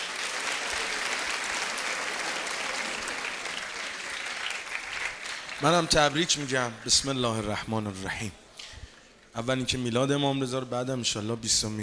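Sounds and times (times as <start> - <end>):
audience applause at a religious gathering celebrating the birthday of Imam Reza: 0.0 - 7.5
speech: 5.6 - 8.4, 9.4 - 11.8.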